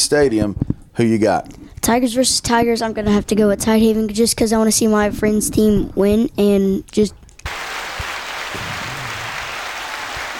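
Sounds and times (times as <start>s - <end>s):
speech: 0.0s - 7.2s
audience applause: 7.5s - 10.3s.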